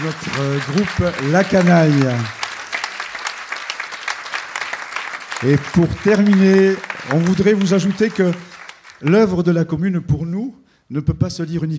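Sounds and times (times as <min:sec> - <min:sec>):
speech: 0:00.0 - 0:02.4, 0:05.4 - 0:11.7
audience applause honoring a choir leader: 0:00.0 - 0:09.5.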